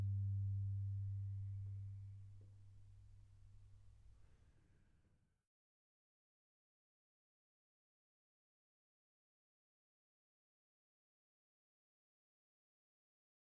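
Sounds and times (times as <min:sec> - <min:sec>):
solo cello: 0:00.0 - 0:02.4.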